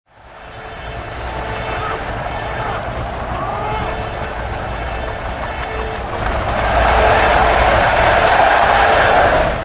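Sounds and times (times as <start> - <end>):
arena crowd: 0.1 - 9.6.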